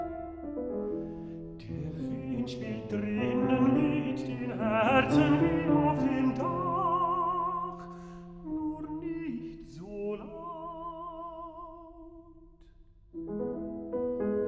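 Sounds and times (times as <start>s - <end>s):
piano: 0.0s - 14.4s
person singing a song cycle: 1.6s - 12.3s.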